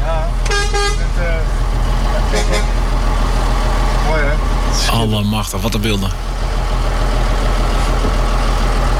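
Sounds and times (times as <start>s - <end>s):
convoy of vehicles engine rumble driving out of Emmen: 0.0s - 8.9s
vehicle horn toots: 0.4s - 1.1s, 2.3s - 2.8s
speech: 5.0s - 6.7s.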